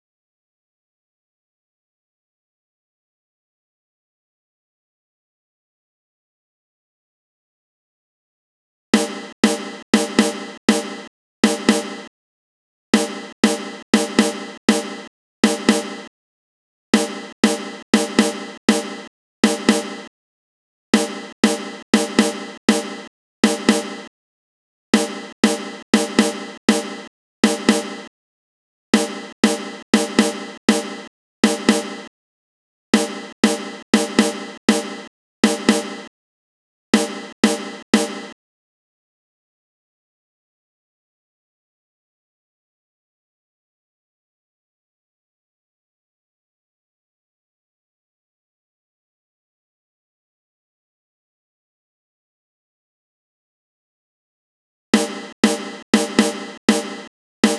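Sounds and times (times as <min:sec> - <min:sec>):
snare drum: 0:09.0 - 0:12.1, 0:13.0 - 0:16.1, 0:17.0 - 0:20.1, 0:21.0 - 0:24.1, 0:25.0 - 0:28.1, 0:29.0 - 0:32.1, 0:33.0 - 0:36.1, 0:37.0 - 0:38.4, 0:55.0 - 0:57.5.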